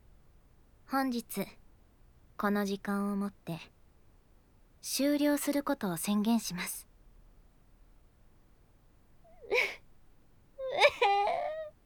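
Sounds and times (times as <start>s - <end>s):
speech: 0.9s - 1.6s, 2.4s - 3.8s, 4.8s - 6.9s
girl crying and sobbing: 9.4s - 9.8s, 10.6s - 11.8s.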